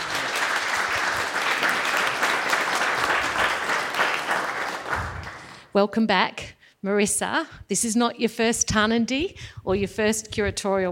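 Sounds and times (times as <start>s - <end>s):
audience applause welcoming guests at Tarnanthi in Adelaide: 0.0s - 5.7s
speech: 5.8s - 10.9s.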